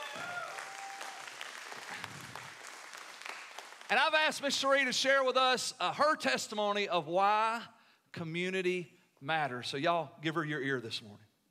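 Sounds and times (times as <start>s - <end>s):
audience applause: 0.0s - 4.0s
speech: 3.9s - 11.3s.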